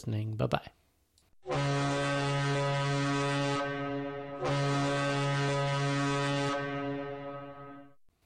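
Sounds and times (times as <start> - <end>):
cruise ship horn: 1.4 - 8.0.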